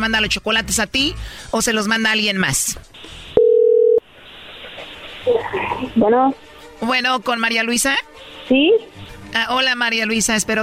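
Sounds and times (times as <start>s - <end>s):
speech: 0.0s - 3.2s, 5.2s - 10.6s
telephone electronic dial tone: 3.4s - 4.0s
telephone line hiss and noise: 3.4s - 4.0s.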